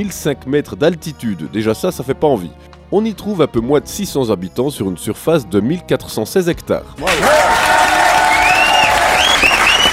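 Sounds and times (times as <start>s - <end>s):
speech: 0.0s - 7.7s
audience applause: 7.0s - 9.9s.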